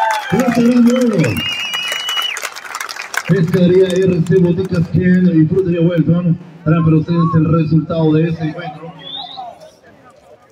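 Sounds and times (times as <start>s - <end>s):
crowd applause at boxing match: 0.0s - 4.9s
speech: 0.3s - 1.6s, 3.3s - 9.0s.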